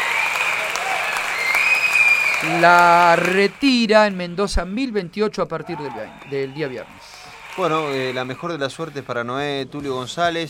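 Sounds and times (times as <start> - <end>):
audience applause: 0.0 - 4.2, 5.7 - 9.0
speech: 2.4 - 10.4.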